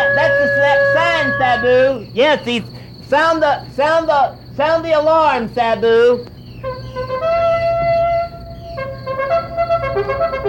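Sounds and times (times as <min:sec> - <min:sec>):
hunting horn blast: 0:00.0 - 0:02.0, 0:06.6 - 0:10.4
speech: 0:01.5 - 0:06.3.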